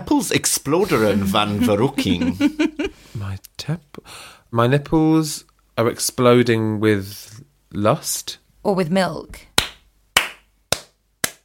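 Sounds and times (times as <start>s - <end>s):
speech: 0.2s - 9.5s
laughter: 0.8s - 3.0s
hands clapping: 9.6s - 11.4s.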